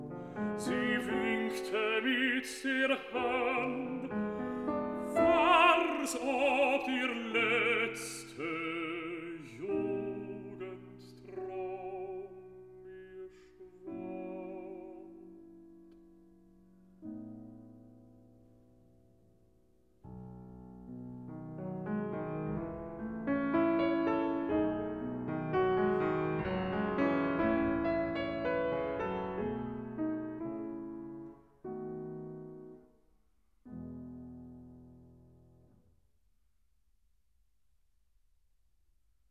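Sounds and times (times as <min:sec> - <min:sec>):
piano: 0:00.0 - 0:36.0
person singing: 0:00.5 - 0:15.5.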